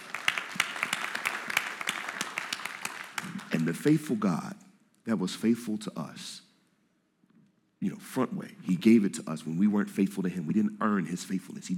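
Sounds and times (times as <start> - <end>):
audience clapping: 0.0 - 4.0
speech: 3.6 - 6.4, 7.8 - 11.7.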